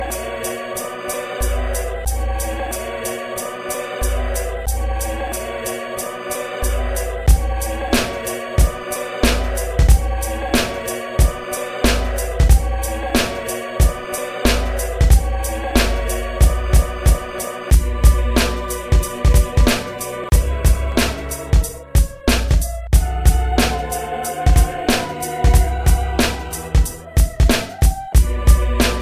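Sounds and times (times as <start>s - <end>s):
underground beat: 0.0s - 29.0s.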